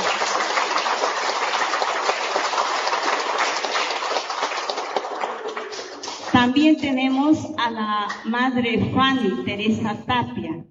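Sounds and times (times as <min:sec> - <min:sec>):
audience applause: 0:00.0 - 0:06.3
speech: 0:06.4 - 0:10.6.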